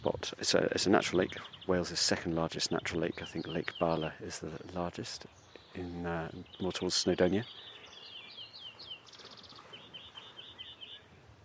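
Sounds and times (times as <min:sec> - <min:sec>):
greenfinch singing beside a natural lake in Wales: 0:00.0 - 0:11.2
hiss: 0:00.0 - 0:11.4
speech: 0:00.2 - 0:07.6.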